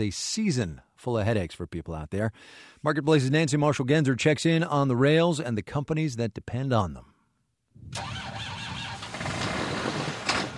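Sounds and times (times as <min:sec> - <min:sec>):
speech: 0:00.0 - 0:07.1, 0:07.8 - 0:08.4
tractor engine cranking and starting: 0:08.0 - 0:10.5.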